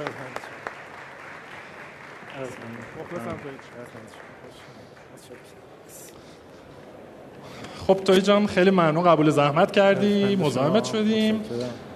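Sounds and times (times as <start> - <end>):
audience applause welcoming a guest: 0.0 - 5.5
speech: 2.4 - 6.5, 7.4 - 11.8.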